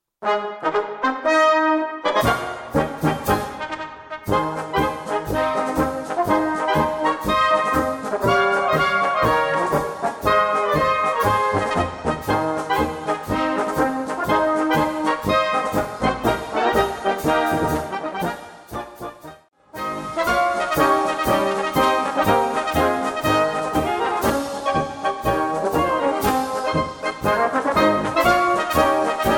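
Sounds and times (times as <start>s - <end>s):
march music: 0.2s - 29.3s.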